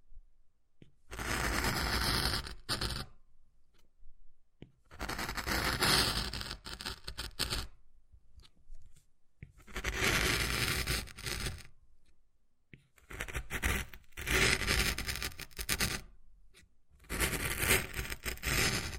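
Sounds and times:
wood carving scraping: 1.2s - 3.1s, 5.0s - 7.7s, 9.6s - 11.7s, 13.1s - 16.0s, 17.1s - 18.9s.

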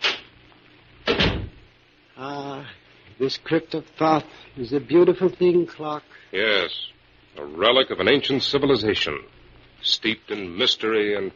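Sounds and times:
door pushed shut in a crypt room: 1.0s - 1.6s
speech: 2.2s - 11.3s.

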